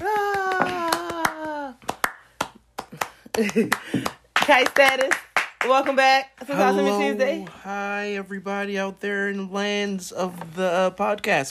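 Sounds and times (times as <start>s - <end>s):
scattered hand claps: 0.0s - 6.0s
speech: 3.4s - 11.4s.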